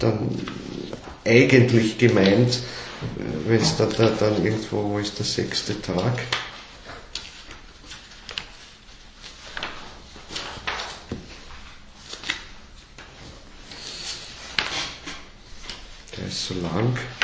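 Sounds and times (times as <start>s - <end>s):
speech: 0.0s - 6.5s, 16.5s - 17.2s
leafing through book pages: 6.7s - 14.4s.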